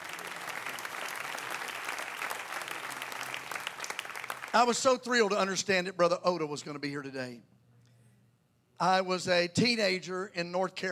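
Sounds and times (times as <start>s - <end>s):
audience clapping hands: 0.0s - 5.0s
speech: 4.5s - 7.5s, 8.8s - 10.9s.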